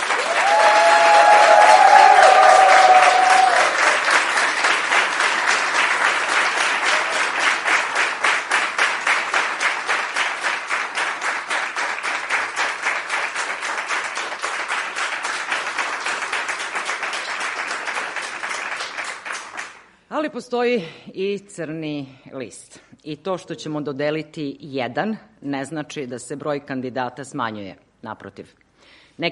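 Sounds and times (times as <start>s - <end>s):
crowd applause at an awards presentation: 0.0s - 19.9s
speech: 20.4s - 29.2s.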